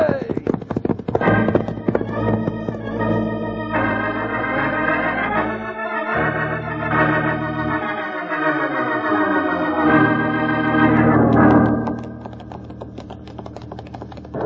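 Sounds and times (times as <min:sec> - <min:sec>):
horses galloping as riders ride off: 0:00.0 - 0:05.3, 0:10.5 - 0:14.4
full music score: 0:01.2 - 0:13.1.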